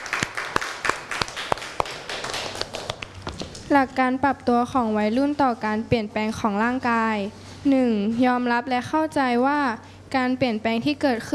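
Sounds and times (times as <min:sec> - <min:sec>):
scattered clapping from a small group of students: 0:00.0 - 0:03.2
speech: 0:03.7 - 0:11.3.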